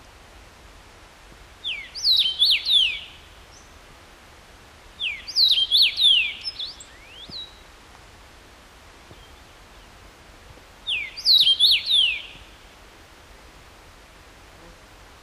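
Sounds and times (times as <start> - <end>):
Carpodacus erythrinus: 1.6 - 3.8, 5.0 - 7.6, 9.1 - 10.0, 10.8 - 12.6.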